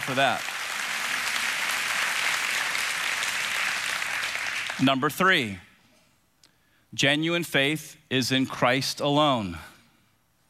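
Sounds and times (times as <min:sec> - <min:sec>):
audience clapping: 0:00.0 - 0:05.1
speech: 0:00.1 - 0:00.5, 0:04.8 - 0:05.7, 0:06.9 - 0:09.7.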